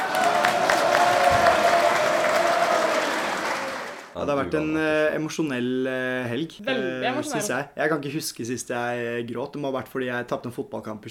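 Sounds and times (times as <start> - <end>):
applause: 0.0 - 4.2
speech: 4.2 - 11.0.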